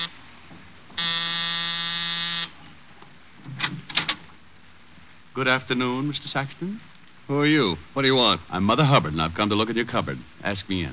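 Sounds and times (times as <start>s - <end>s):
apartment door buzzer being pressed: 1.0s - 2.6s
speech: 5.4s - 10.9s.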